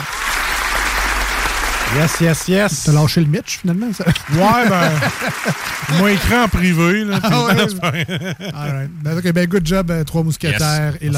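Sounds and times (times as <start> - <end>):
applause: 0.0 - 8.2
speech: 1.9 - 11.1
laughter: 3.8 - 9.0.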